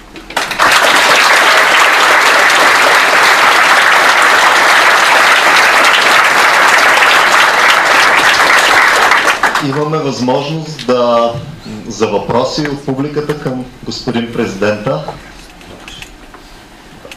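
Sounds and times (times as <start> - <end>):
audience applause: 0.3 - 9.9
speech: 9.7 - 15.2.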